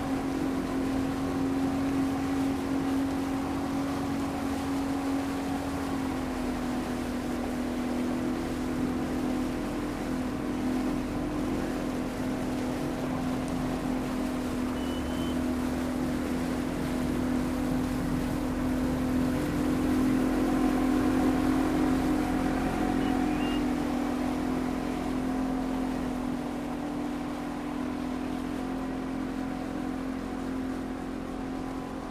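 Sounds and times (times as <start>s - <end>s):
Ranger boat on board: 0.0s - 32.0s.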